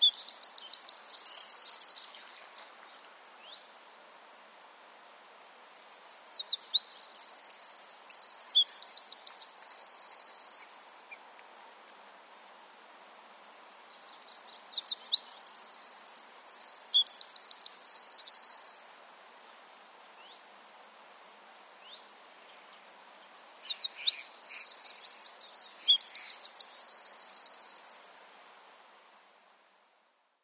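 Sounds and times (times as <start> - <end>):
Eurasian wren singing: 0.0 - 2.7, 5.6 - 10.8, 13.1 - 18.9, 23.2 - 28.0.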